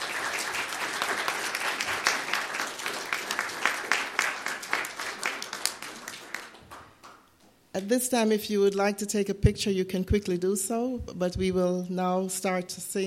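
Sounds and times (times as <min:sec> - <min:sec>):
audience applause: 0:00.0 - 0:07.2
speech: 0:07.8 - 0:13.0.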